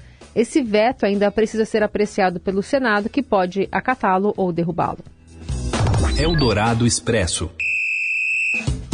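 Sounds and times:
speech: 0.4 - 5.2, 6.2 - 7.7
whistle blow: 7.6 - 8.8.

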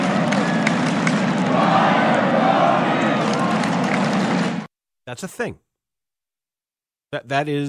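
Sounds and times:
ballpark crowd chanting: 0.0 - 4.7
speech: 5.1 - 5.7, 7.1 - 7.6.

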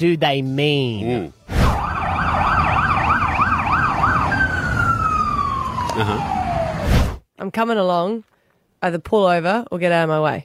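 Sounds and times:
speech: 0.0 - 1.4, 6.0 - 6.4, 7.4 - 10.4
police car siren wailing: 1.6 - 6.9.

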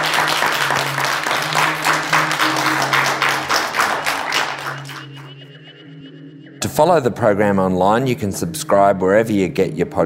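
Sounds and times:
audience applause: 0.0 - 5.3
speech: 6.8 - 10.0.

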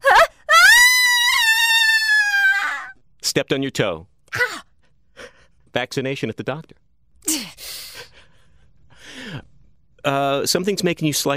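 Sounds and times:
scream imitating falling off a cliff: 0.0 - 2.9
speech: 3.4 - 4.4, 5.8 - 6.8, 10.0 - 11.3.

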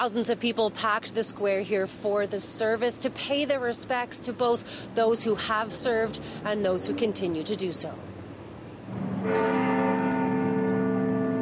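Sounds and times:
speech: 0.0 - 8.2
faint noise: 0.0 - 11.4
clock bell striking: 9.2 - 11.4.

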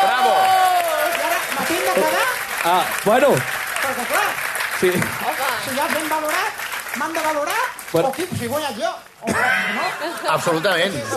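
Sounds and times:
audience applause: 0.0 - 8.3
speech: 2.0 - 11.1
laughter: 9.2 - 11.1.

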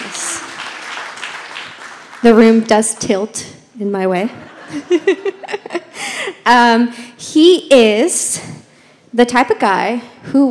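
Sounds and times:
audience clapping: 0.0 - 3.0
speech: 2.2 - 10.4
laughter: 4.4 - 6.3.

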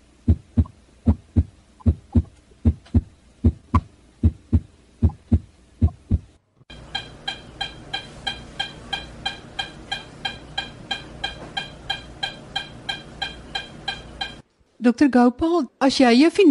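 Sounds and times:
fast heartbeat of supraventricular tachycardia: 0.3 - 6.3
speech: 14.8 - 16.5.

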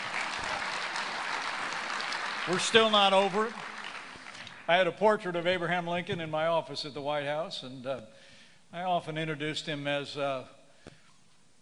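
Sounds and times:
crowd applause: 0.0 - 4.9
speech: 2.5 - 3.6, 4.7 - 10.6.

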